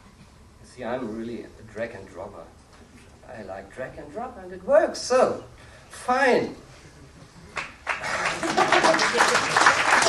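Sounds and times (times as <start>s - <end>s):
speech: 0.8s - 2.6s, 3.3s - 6.6s
laughter: 6.7s - 10.0s
audience applause: 7.6s - 10.0s.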